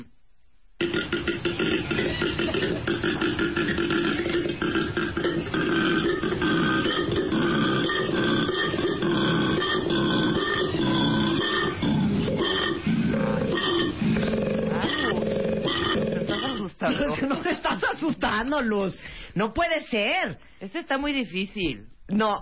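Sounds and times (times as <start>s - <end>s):
koala bellowing: 0.9s - 16.7s
laughter: 16.9s - 18.2s
speech: 18.4s - 22.4s.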